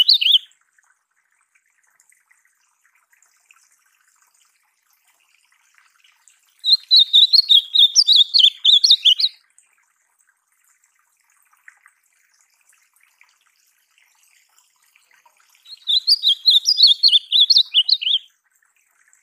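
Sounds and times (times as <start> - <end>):
ultramarine grosbeak song: 0.0 - 0.5, 6.6 - 9.4, 15.6 - 18.3.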